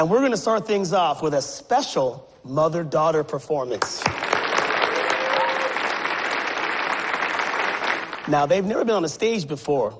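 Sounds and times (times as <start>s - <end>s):
speech: 0.0s - 4.3s, 8.3s - 9.9s
audience applauding: 4.0s - 8.5s.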